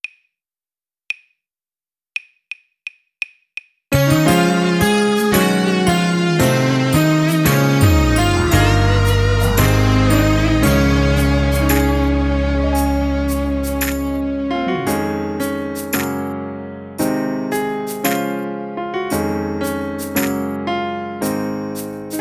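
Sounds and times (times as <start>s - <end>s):
music without drums: 3.9s - 16.4s, 17.0s - 22.1s.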